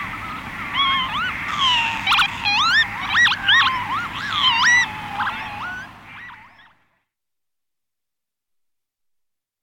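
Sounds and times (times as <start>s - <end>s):
lapwing: 0.2s - 6.7s.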